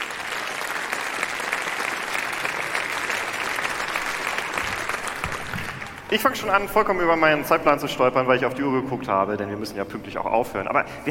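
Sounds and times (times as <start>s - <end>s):
audience applause: 0.0s - 6.4s
speech: 6.1s - 11.0s.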